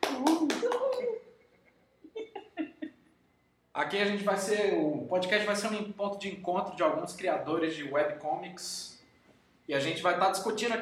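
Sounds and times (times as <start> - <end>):
hand clapping: 0.0 - 1.2
person cheering: 0.0 - 1.3
speech: 3.8 - 9.0, 9.7 - 10.8.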